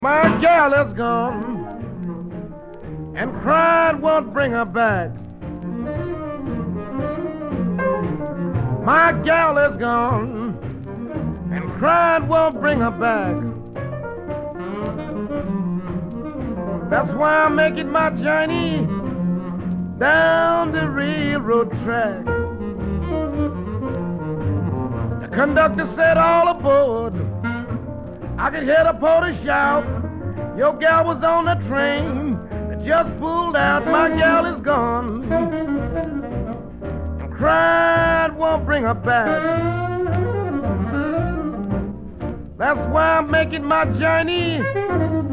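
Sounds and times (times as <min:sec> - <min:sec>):
vocal melody: 0:00.0 - 0:45.3.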